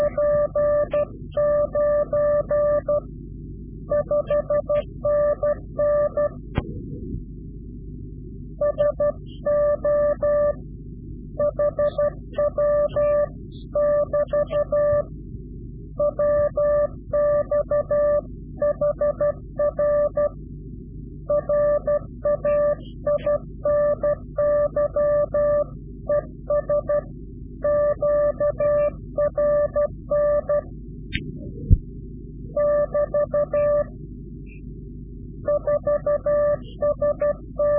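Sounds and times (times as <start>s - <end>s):
Morse code CW directional call: 0.0s - 3.1s, 3.9s - 6.4s, 8.6s - 10.6s, 11.4s - 15.1s, 16.0s - 20.4s, 21.3s - 30.7s, 32.5s - 33.9s, 35.4s - 37.7s.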